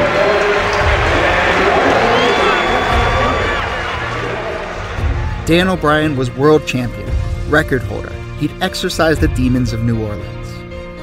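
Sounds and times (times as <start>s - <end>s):
stadium crowd cheering: 0.0s - 6.5s
whistles and shouts: 1.7s - 4.2s
speech: 5.5s - 10.4s.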